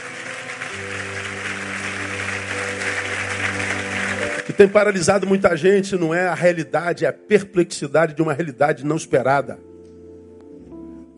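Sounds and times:
audience applause: 0.0s - 5.4s
speech: 0.8s - 1.2s, 4.6s - 9.7s.

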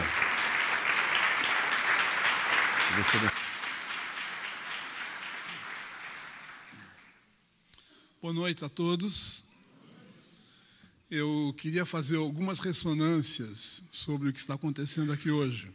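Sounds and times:
audience applause: 0.0s - 7.2s
speech: 3.0s - 3.3s, 8.2s - 9.5s, 11.1s - 15.7s.

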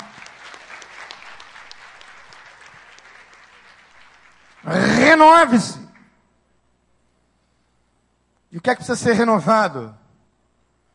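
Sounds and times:
audience applause: 0.0s - 5.3s
speech: 4.6s - 5.8s, 8.6s - 10.0s.

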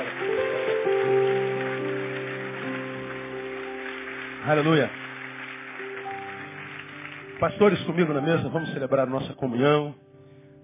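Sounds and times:
audience applauding loudly: 0.0s - 8.4s
speech: 4.4s - 5.1s, 7.4s - 10.0s.

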